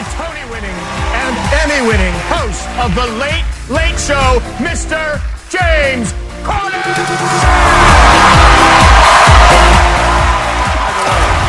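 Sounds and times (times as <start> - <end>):
canned studio applause and cheering: 0.0 - 11.4
thumping rhythmic band tune: 0.0 - 11.4
speech: 1.6 - 8.4.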